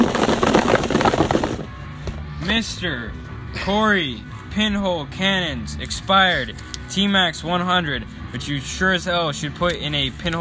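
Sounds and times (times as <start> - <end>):
box being shaken for a prize draw: 0.0 - 1.7
speech: 2.5 - 10.3.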